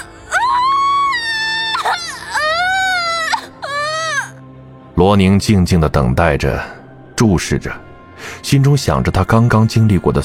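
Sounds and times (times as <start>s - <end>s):
newborn baby crying just after birth: 0.0s - 4.4s
speech: 5.0s - 7.8s, 8.4s - 10.2s.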